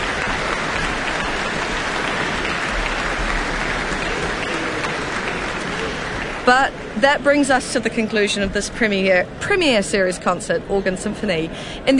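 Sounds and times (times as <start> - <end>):
audience applauding an orchestra concert in a town hall: 0.0 - 7.5
speech: 6.4 - 11.9.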